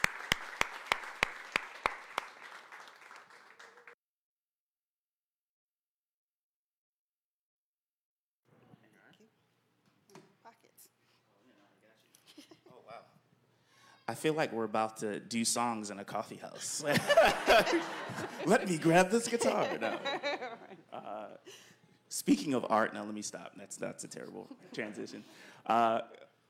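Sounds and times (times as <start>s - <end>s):
church audience applause welcoming two guest speakers: 0.0s - 4.0s, 17.2s - 20.5s
speech: 14.1s - 26.2s
laughter: 16.4s - 21.8s, 23.6s - 26.1s.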